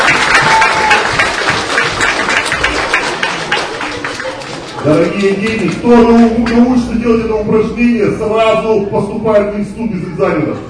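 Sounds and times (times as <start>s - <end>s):
applause for an athlete: 0.0s - 5.9s
speech: 4.9s - 10.6s.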